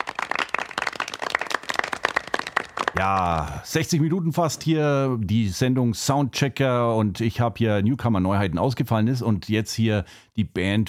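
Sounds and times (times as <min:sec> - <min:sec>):
applause: 0:00.0 - 0:03.7
speech: 0:03.0 - 0:10.8.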